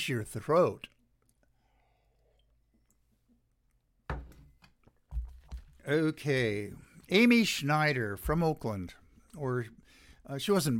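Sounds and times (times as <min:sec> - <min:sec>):
speech: 0:00.0 - 0:01.0, 0:05.8 - 0:10.7
person sipping coffee: 0:01.0 - 0:03.8.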